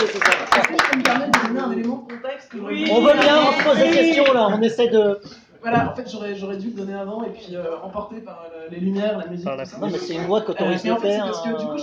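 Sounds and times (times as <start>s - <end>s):
audience applauding: 0.0s - 4.4s
speech: 3.0s - 11.8s.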